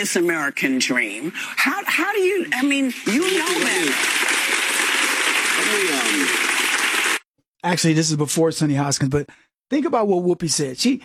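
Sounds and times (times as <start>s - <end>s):
speech: 0.0s - 4.3s, 5.7s - 6.4s, 7.6s - 11.0s
studio audience applause on a TV talk show: 3.0s - 7.2s.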